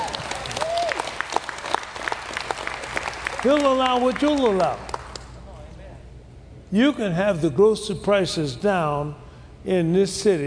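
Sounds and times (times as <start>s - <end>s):
audience hand clapping applause: 0.0s - 5.4s
speech: 3.4s - 4.9s, 6.7s - 10.4s.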